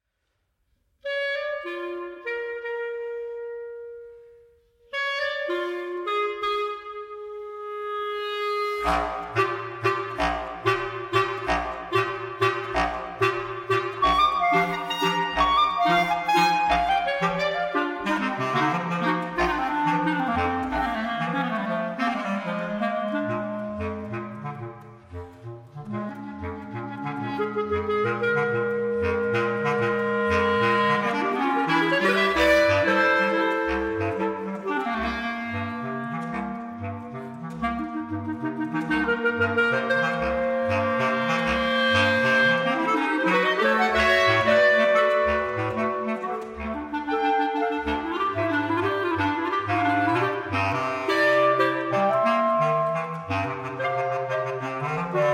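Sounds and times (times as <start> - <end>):
clarinet quartet: 0.9 - 55.3.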